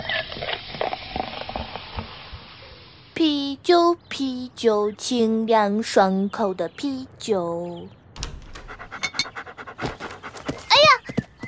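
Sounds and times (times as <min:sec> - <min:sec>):
speech: 0:03.2 - 0:08.0
dog panting: 0:08.6 - 0:11.3.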